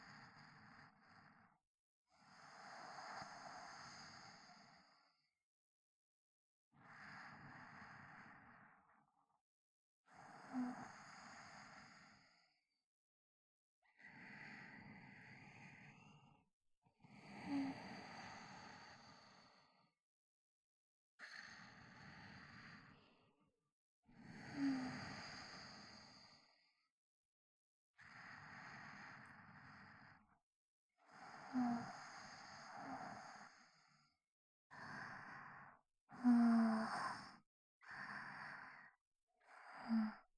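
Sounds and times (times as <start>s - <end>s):
sleep breathing recorded with binaural microphone: 0.1s - 1.5s, 2.3s - 5.0s, 6.8s - 9.0s, 10.2s - 12.6s, 14.0s - 16.4s, 17.2s - 19.8s, 21.2s - 23.2s, 24.4s - 26.7s, 28.1s - 30.4s, 31.0s - 40.3s.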